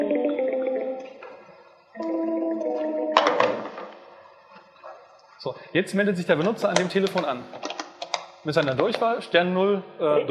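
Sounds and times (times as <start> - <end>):
SNOM desk phone ringing tone: 0.0 - 1.2, 2.0 - 4.1
speech: 5.4 - 7.7, 8.4 - 10.2.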